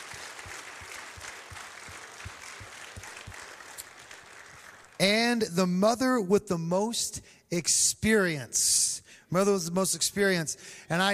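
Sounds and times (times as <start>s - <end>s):
audience applauding at a church awards event: 0.0s - 5.0s
speech: 5.0s - 11.1s.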